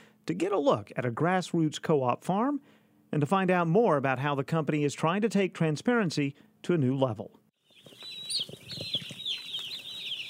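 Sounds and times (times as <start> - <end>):
speech: 0.3 - 7.4
day-old chicks peeping in a brooder on a farm in Charleston: 7.6 - 10.2.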